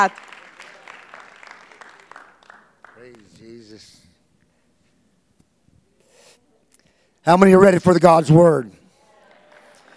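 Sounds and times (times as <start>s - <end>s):
speech: 0.0s - 0.3s, 7.2s - 8.8s
audience clapping hands: 0.0s - 3.5s, 9.2s - 9.9s.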